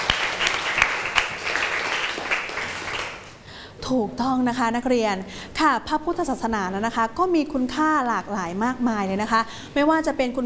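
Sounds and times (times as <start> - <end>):
classroom applause for a student: 0.0 - 3.4
speech: 3.9 - 10.4.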